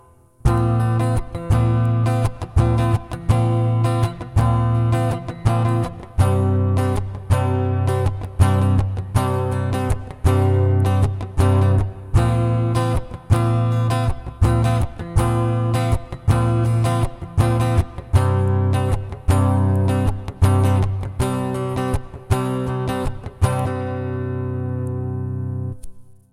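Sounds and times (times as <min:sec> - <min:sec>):
acoustic music: 0:00.0 - 0:26.1.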